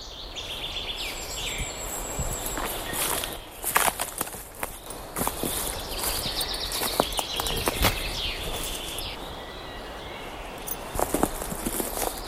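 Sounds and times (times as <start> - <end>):
birdsong in a forest: 0.0 - 12.2
wind: 0.0 - 12.2
footsteps in a forest: 1.8 - 9.2, 10.6 - 12.2.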